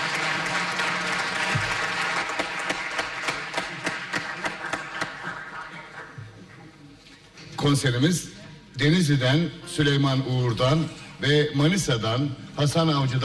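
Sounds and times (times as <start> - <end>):
audience applause welcoming a choir conductor at a Turkish folk song concert: 0.0 - 6.2
speech: 7.6 - 13.2.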